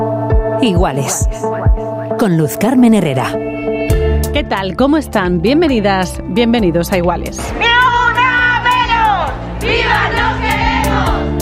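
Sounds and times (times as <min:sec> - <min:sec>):
speech: 0:00.6 - 0:03.8, 0:04.4 - 0:07.9
protest crowd shouting and chanting: 0:07.4 - 0:11.4.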